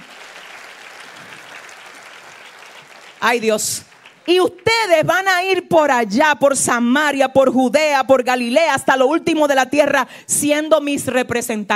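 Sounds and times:
audience applause: 0.0s - 4.9s
speech: 3.2s - 11.7s.

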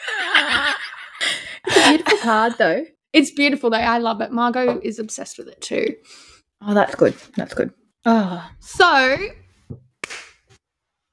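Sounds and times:
speech: 1.9s - 9.8s
hand clap: 10.0s - 10.5s.

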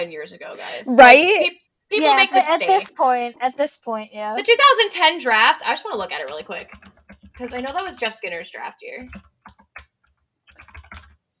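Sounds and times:
speech: 0.0s - 9.3s
computer keyboard typing: 5.5s - 11.2s.

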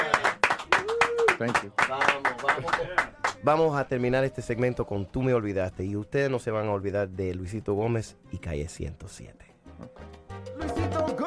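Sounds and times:
rhythmic audience clapping for a band during a live interview: 0.0s - 3.6s
speech: 1.4s - 11.2s.

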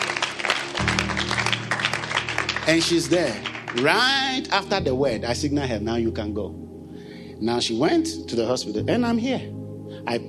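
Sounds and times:
audience clapping: 0.0s - 4.5s
speech: 2.7s - 6.6s, 7.4s - 10.2s.

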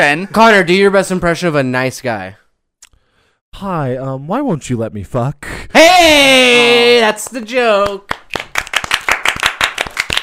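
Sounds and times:
speech: 0.0s - 2.4s, 3.6s - 8.2s
group applause: 6.4s - 10.2s.

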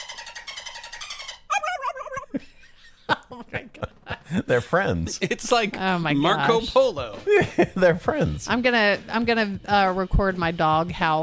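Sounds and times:
voice imitating a dolphin: 1.5s - 2.3s
laughter: 1.5s - 5.8s, 7.3s - 8.4s
speech: 3.5s - 11.2s.

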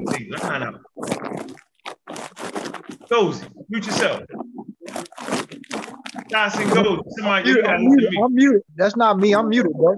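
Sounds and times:
person chewing crunchy barbecue chicken: 0.0s - 4.1s, 4.8s - 6.5s
speech: 0.3s - 0.9s, 3.1s - 5.0s, 6.3s - 9.9s.

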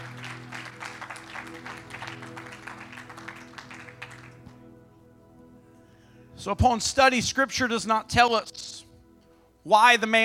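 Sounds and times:
audience clapping hands: 0.0s - 4.6s
speech: 6.4s - 8.8s, 9.6s - 10.2s.

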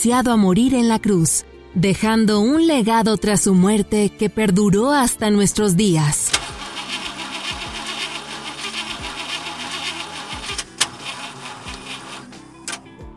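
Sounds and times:
speech: 0.0s - 6.4s
car engine cranking without starting: 6.3s - 12.9s.

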